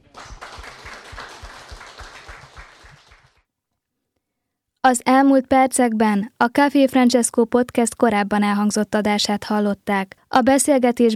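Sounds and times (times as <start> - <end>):
audience applause: 0.0 - 3.4
speech: 4.9 - 11.1.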